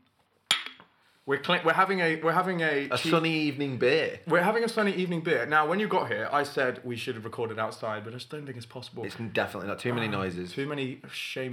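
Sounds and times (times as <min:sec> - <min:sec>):
beer glasses clinking in a toast: 0:00.5 - 0:00.8
speech: 0:01.3 - 0:11.5.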